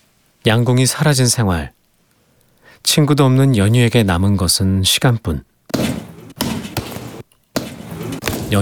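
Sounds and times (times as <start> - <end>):
speech: 0.4 - 1.8, 2.8 - 5.8
boxing gloves punching a sandbag: 5.7 - 8.6.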